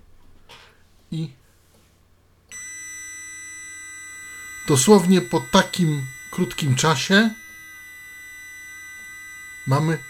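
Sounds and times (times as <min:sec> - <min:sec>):
faint hum: 0:00.0 - 0:10.0
speech: 0:01.1 - 0:01.4, 0:04.7 - 0:07.4, 0:09.7 - 0:10.0
Huawei E5776 mobile router beep after being plugged in: 0:02.5 - 0:10.0.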